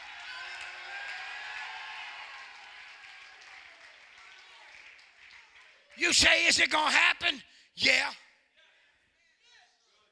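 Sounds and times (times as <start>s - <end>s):
audience applauding: 0.0s - 6.4s
speech: 6.0s - 8.2s.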